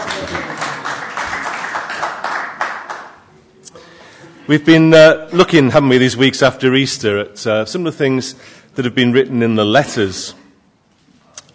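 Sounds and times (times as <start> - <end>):
audience applause: 0.0 - 3.3
speech: 4.5 - 10.4.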